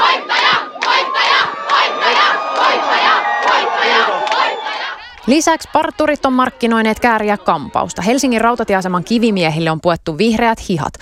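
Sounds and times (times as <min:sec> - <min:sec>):
people shouting: 0:00.0 - 0:05.2
crowd cheering and chanting at an airport celebration: 0:00.0 - 0:09.0
high whistles: 0:00.3 - 0:05.2
speech: 0:05.3 - 0:11.0.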